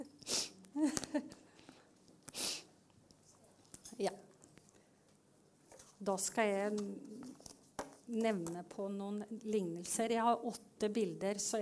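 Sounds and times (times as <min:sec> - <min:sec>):
sniffling: 0:00.2 - 0:00.6, 0:01.6 - 0:02.7
speech: 0:00.8 - 0:01.4, 0:04.0 - 0:04.3, 0:06.0 - 0:07.2, 0:08.1 - 0:11.6.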